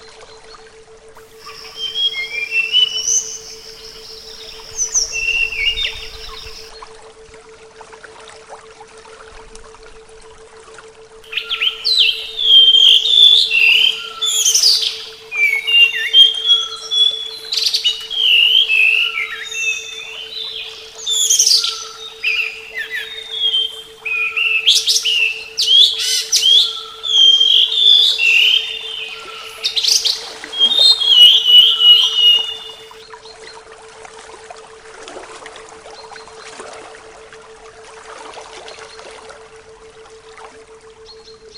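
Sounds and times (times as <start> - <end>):
steady electrical hum: 0.0 - 41.5
Flycatcher singing: 1.4 - 6.7, 11.3 - 33.0.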